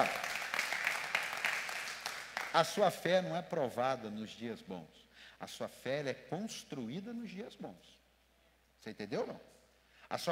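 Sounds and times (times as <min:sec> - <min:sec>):
audience applause: 0:00.0 - 0:02.6
speech: 0:02.6 - 0:08.0, 0:08.8 - 0:10.3.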